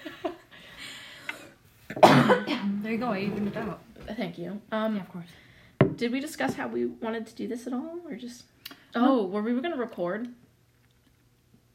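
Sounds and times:
person coughing: 0:01.9 - 0:02.8
speech: 0:02.0 - 0:10.4.

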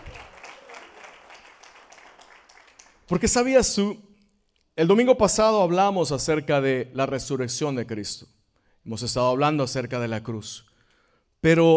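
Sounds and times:
audience applause: 0:00.0 - 0:03.1
speech: 0:03.1 - 0:04.1, 0:04.8 - 0:10.7, 0:11.4 - 0:11.7.

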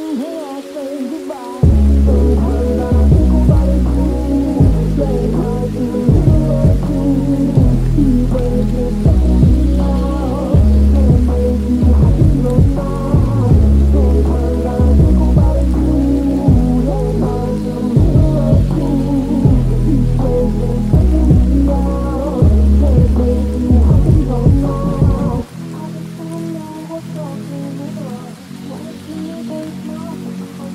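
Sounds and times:
rain: 0:00.0 - 0:30.7
deep pitched pulsing pattern: 0:01.6 - 0:25.5
low rumble: 0:01.6 - 0:25.5.

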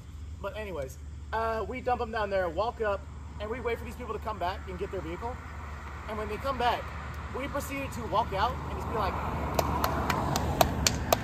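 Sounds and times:
speech: 0:00.4 - 0:05.5, 0:06.1 - 0:09.8
hands clapping: 0:09.5 - 0:11.2.

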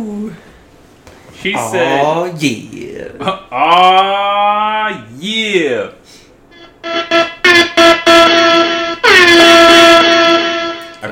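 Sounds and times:
speech: 0:01.4 - 0:06.0
soundboard air horn effect: 0:06.5 - 0:11.1.

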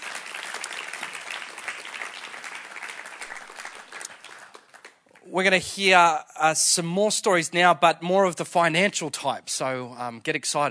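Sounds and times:
audience applause: 0:00.0 - 0:05.0
speech: 0:05.3 - 0:10.6.

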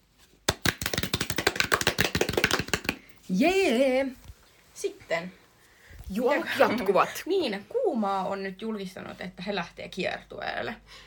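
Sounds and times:
hands clapping: 0:00.5 - 0:03.1
speech: 0:03.3 - 0:04.2, 0:04.8 - 0:05.4, 0:06.1 - 0:11.0.

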